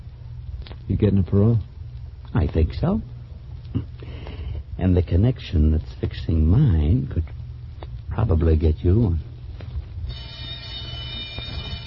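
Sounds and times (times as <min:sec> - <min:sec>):
speech: 0:00.9 - 0:01.7, 0:02.3 - 0:03.1, 0:03.7 - 0:04.1, 0:04.8 - 0:07.4, 0:08.2 - 0:09.3
prison yard bell ringing: 0:10.1 - 0:11.8.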